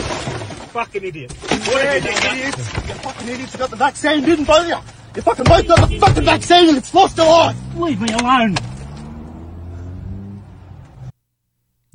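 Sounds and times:
car window being punched and shattering: 0.0s - 8.9s
speech: 0.8s - 8.7s.

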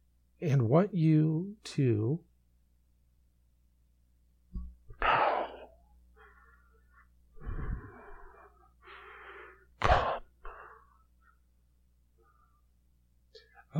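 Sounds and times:
speech: 0.4s - 2.3s
heavy breathing of a phone caller: 5.0s - 11.4s.

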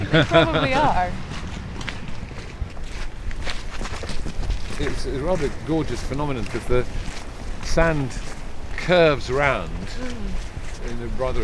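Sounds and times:
laughter: 0.0s - 1.2s
footsteps crossing a sand tombolo: 0.0s - 11.4s
speech: 0.1s - 1.3s, 4.8s - 7.0s, 7.7s - 11.4s.

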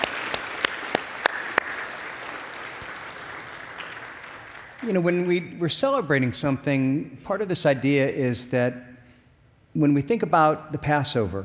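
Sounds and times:
light scattered audience applause: 0.0s - 4.9s
soft hiss: 3.6s - 11.4s
speech: 4.8s - 8.9s, 9.8s - 11.4s.

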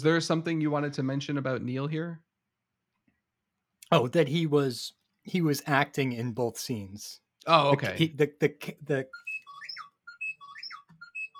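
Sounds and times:
speech: 0.0s - 2.3s, 3.9s - 9.3s
phone ringtone: 9.0s - 11.3s.

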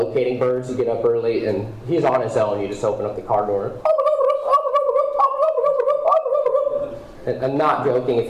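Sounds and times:
speech: 0.0s - 4.0s, 7.2s - 8.2s
person imitating a wild turkey gobble: 3.8s - 7.0s.

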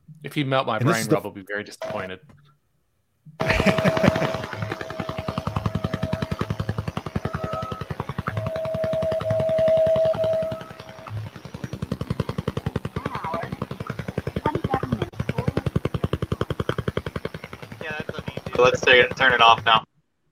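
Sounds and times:
speech: 0.2s - 2.4s, 3.4s - 4.4s, 18.9s - 19.8s
laughter: 0.8s - 1.2s, 3.4s - 5.3s
Russian woodpecker over-the-horizon radar signal: 1.8s - 2.2s, 3.4s - 19.9s
thin sustained tone: 3.7s - 11.4s.

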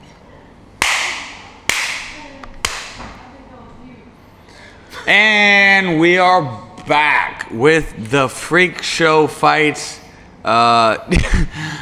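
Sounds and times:
hand clap for recording sync: 0.8s - 3.0s
speech: 5.0s - 11.8s.

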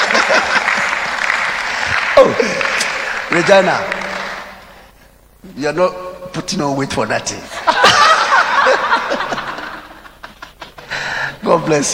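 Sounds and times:
laughter: 0.0s - 2.8s, 7.5s - 11.0s
person clapping: 0.0s - 4.7s
speech: 3.3s - 4.0s, 5.4s - 7.6s, 11.4s - 11.9s.

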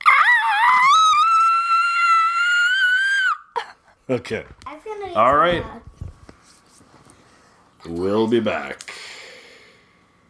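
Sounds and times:
woman screaming with her fist in her mouth: 0.0s - 3.6s
speech: 4.1s - 5.8s, 7.8s - 8.9s.

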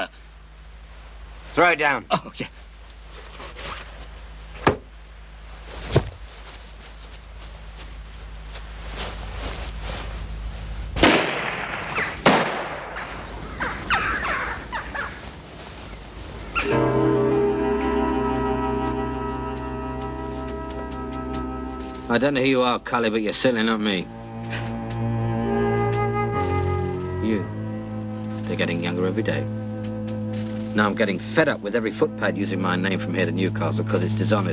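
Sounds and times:
speech: 1.6s - 2.6s, 22.2s - 24.2s, 29.0s - 29.6s, 30.8s - 34.5s
steady tonal hum: 6.9s - 34.5s
gunshots fired through a hat: 11.0s - 13.2s.

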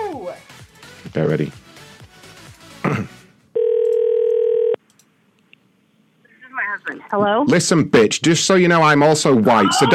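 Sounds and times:
speech: 1.2s - 1.6s, 7.1s - 9.9s
telephone call ringing tone: 3.6s - 4.8s.

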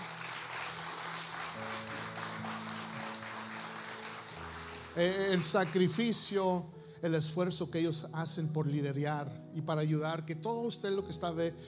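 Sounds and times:
audience applauding: 0.0s - 6.3s
speech: 5.0s - 11.6s.

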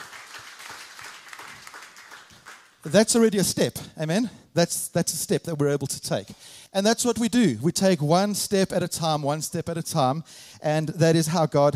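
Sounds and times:
crowd applauding: 0.0s - 3.0s
speech: 2.8s - 11.7s.

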